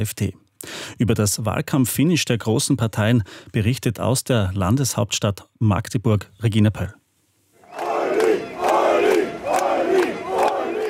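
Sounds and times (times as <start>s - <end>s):
speech: 0.0s - 7.0s
fans chanting and cheering at a rally: 7.6s - 10.8s.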